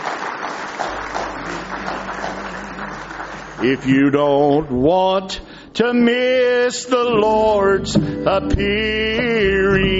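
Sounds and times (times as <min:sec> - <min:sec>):
audience hand clapping in praise: 0:00.0 - 0:04.7
speech: 0:03.6 - 0:09.9.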